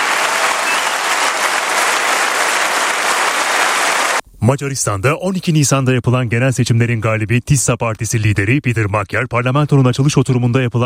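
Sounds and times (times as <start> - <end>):
applause in the Hungarian parliament for the prime minister's oath: 0.0 - 4.2
speech: 4.4 - 10.8.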